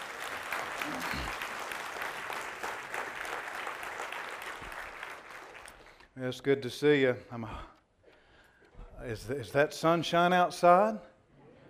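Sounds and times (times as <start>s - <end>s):
audience applauding: 0.0s - 6.1s
speech: 6.2s - 7.7s, 9.0s - 11.1s.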